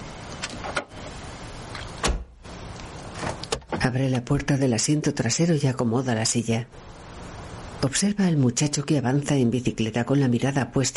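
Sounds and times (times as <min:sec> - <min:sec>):
car trunk being closed: 0:02.0 - 0:02.3
speech: 0:03.8 - 0:07.0, 0:07.8 - 0:10.9.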